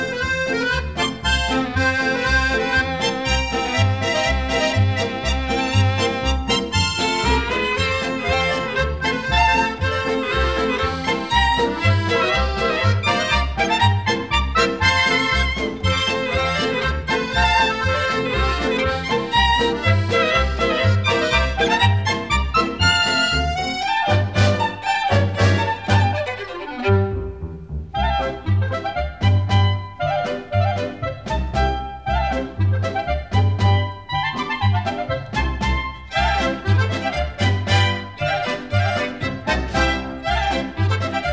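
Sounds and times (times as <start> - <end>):
Swiss polka music: 0.0 - 41.3.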